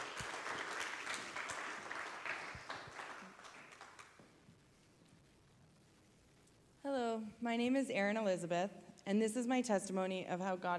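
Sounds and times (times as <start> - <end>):
audience applauding: 0.0 - 4.3
speech: 6.8 - 10.7.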